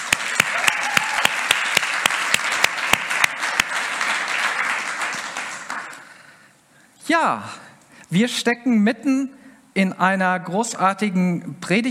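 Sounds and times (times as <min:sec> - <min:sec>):
audience applause: 0:00.0 - 0:06.1
speech: 0:07.1 - 0:11.8.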